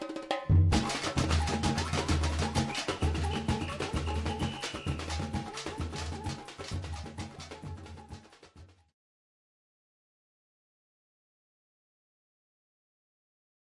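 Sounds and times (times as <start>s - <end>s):
samba music: 0.0s - 8.9s.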